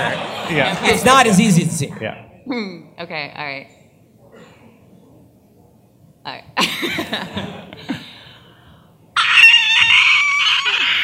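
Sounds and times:
laughter: 0:00.0 - 0:01.1, 0:06.6 - 0:08.2
speech: 0:00.5 - 0:03.8, 0:06.3 - 0:07.6
person imitating a screech: 0:09.2 - 0:11.0.

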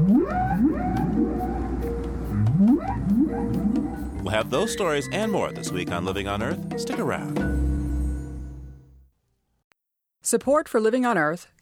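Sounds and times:
whale song: 0:00.0 - 0:05.9
speech: 0:04.3 - 0:07.5, 0:10.3 - 0:11.6.

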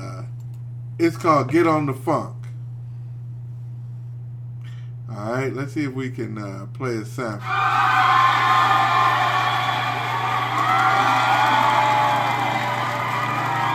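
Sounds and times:
low steady hum: 0:00.0 - 0:13.7
speech: 0:01.0 - 0:02.4, 0:05.2 - 0:08.8
high whoops: 0:07.4 - 0:13.7
live concert crowd cheering and applauding: 0:07.4 - 0:13.7.

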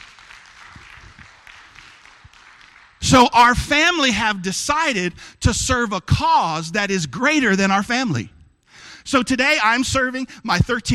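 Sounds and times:
audience clapping: 0:00.0 - 0:03.4
speech: 0:03.1 - 0:08.4, 0:09.0 - 0:10.9.

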